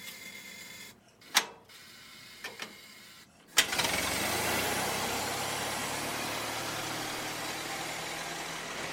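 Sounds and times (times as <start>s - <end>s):
Ford Model T engine cranking and starting: 3.5s - 7.1s
Ford Model T engine running roughly: 3.6s - 8.9s.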